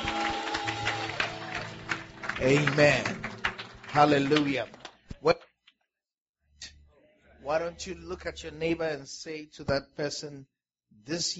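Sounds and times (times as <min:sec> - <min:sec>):
church congregation clapping as a clap offering: 0:00.0 - 0:05.3
speech: 0:02.4 - 0:03.2, 0:03.9 - 0:05.4, 0:07.5 - 0:11.3.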